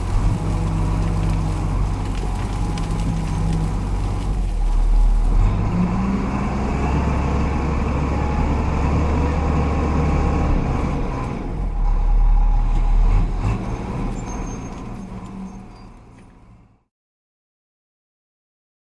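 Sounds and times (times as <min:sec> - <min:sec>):
bulldozer tires crushing vegetation: 0:00.0 - 0:07.5
bulldozer starting and driving through brush: 0:00.0 - 0:16.9
bulldozer metallic squeaks: 0:13.6 - 0:16.3.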